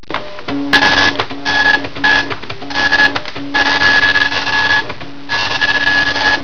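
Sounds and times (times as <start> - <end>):
dot matrix printer: 0.1 - 6.4.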